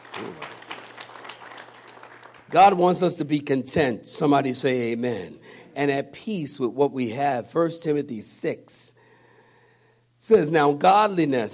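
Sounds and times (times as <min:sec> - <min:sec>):
audience clapping: 0:00.0 - 0:02.8
speech: 0:00.2 - 0:00.5, 0:02.5 - 0:09.0, 0:10.2 - 0:11.5.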